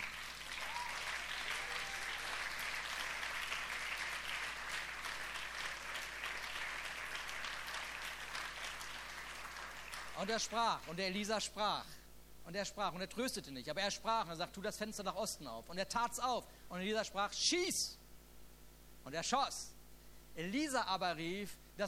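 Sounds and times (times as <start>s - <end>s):
audience applause: 0.0s - 10.3s
speech: 10.2s - 18.0s, 19.0s - 19.8s, 20.4s - 21.8s.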